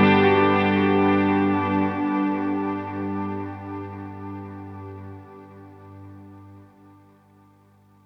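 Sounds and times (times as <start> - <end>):
Earthquaker Devices Disaster Transport delay pedal at max delay time and mix: 0.0 - 6.4.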